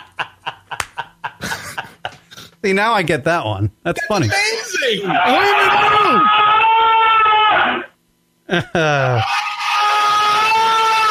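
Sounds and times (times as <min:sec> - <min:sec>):
laughter: 0:00.0 - 0:02.3, 0:08.5 - 0:09.8
speech: 0:02.6 - 0:06.5, 0:08.5 - 0:09.4
men screaming against each other: 0:04.3 - 0:07.9, 0:08.9 - 0:11.0.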